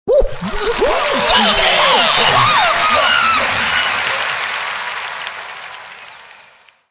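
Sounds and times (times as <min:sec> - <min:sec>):
people shouting woohoo: 0:00.1 - 0:04.6
laughter: 0:00.4 - 0:06.2.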